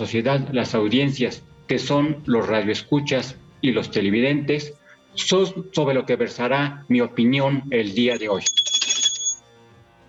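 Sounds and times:
speech: 0:00.0 - 0:08.6
bell ringing: 0:08.0 - 0:09.4.

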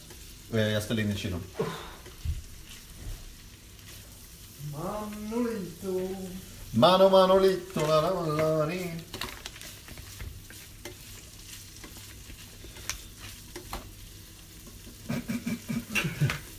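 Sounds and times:
bread frying in butter in a pan: 0:00.0 - 0:16.5
speech: 0:00.5 - 0:01.9, 0:04.8 - 0:09.1
scraping and tapping in pan: 0:07.7 - 0:14.0
laughter: 0:15.0 - 0:16.4.

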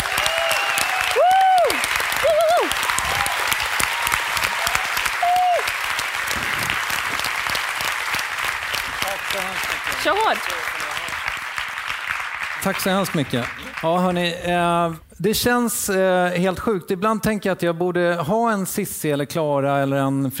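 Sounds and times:
audience applause: 0:00.0 - 0:14.4
speech: 0:10.0 - 0:10.6, 0:12.6 - 0:20.3.

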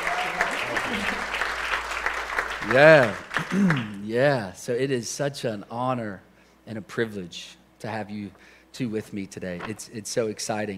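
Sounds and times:
audience applause: 0:00.0 - 0:04.0
speech: 0:02.7 - 0:10.7.

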